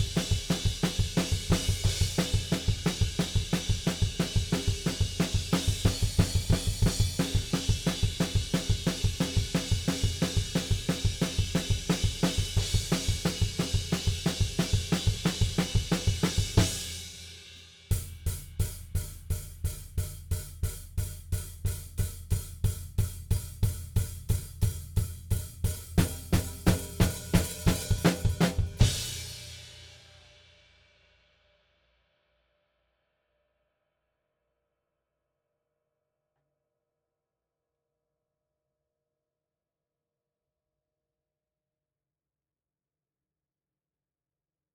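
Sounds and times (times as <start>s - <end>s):
drums: 0.0s - 31.4s.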